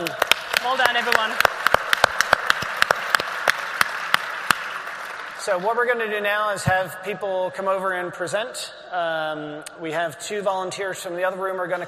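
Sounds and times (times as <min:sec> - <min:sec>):
speech: 0:00.0 - 0:01.6, 0:05.5 - 0:11.8
audience applause: 0:00.0 - 0:05.7.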